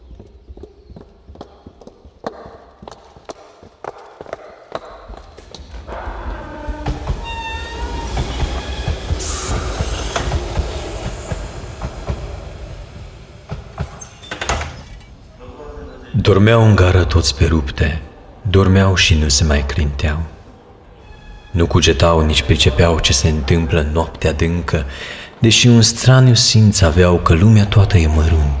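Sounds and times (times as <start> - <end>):
train wheels clacking over rail joints in a station: 5.1 - 15.1
train wheels squealing: 6.0 - 15.1, 21.0 - 22.5
speech: 16.3 - 20.4, 21.5 - 28.5.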